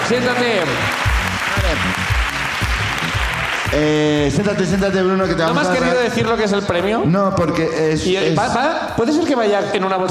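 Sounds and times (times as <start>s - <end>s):
audience applause: 0.0s - 4.9s
speech: 0.1s - 1.0s, 1.7s - 2.1s, 3.7s - 10.0s.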